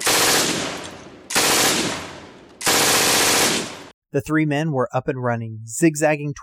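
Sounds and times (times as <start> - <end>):
rifle and machine gun fire from a watchtower at a prisoner-of-war camp: 0.0 - 3.9
speech: 4.1 - 6.4.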